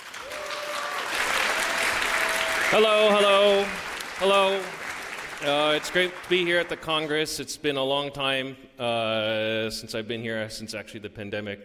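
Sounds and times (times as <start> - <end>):
audience applause welcoming a speaker at a congress: 0.0 - 7.2
speech: 2.7 - 4.8, 5.4 - 11.6.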